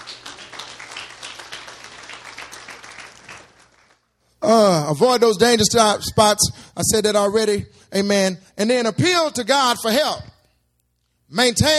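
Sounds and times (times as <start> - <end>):
audience clapping hands: 0.0 - 4.2
speech: 4.5 - 10.3, 11.3 - 11.7.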